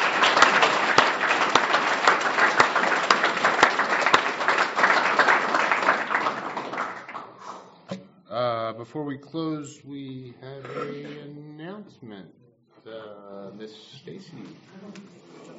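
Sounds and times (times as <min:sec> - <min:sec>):
audience applause: 0:00.0 - 0:07.8
speech: 0:08.9 - 0:15.5.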